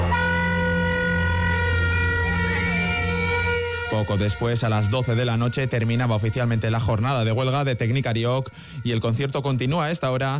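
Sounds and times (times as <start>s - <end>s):
protesters' whistles blasting at concert start: 0.2s - 5.6s
speech: 4.1s - 10.3s.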